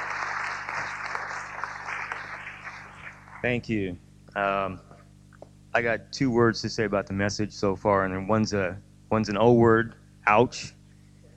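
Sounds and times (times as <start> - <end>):
congregation applause welcoming a speaker at a Sunday morning church service: 0.0 - 3.6
speech: 3.4 - 4.9, 5.8 - 10.8.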